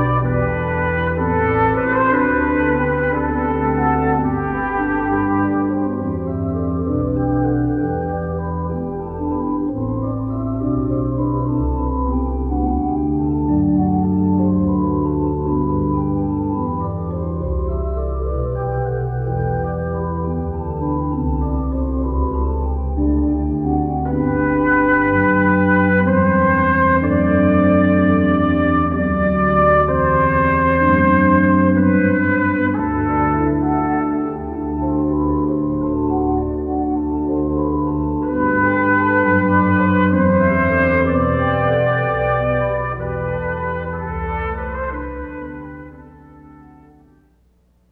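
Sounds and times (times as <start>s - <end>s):
solo trumpet playing a chorale: 0.0s - 11.6s, 22.9s - 47.5s
organ playing a chorale: 0.0s - 47.1s.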